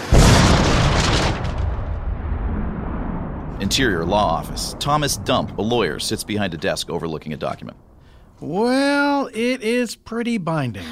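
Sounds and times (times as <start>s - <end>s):
plane crashing into a bus and exploding: 0.0s - 8.4s
crackling debris: 0.0s - 8.7s
speech: 3.6s - 10.9s.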